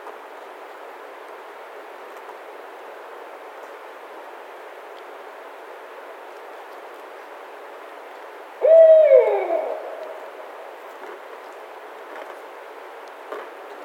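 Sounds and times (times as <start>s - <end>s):
Barred Owl calling: 8.6s - 10.6s.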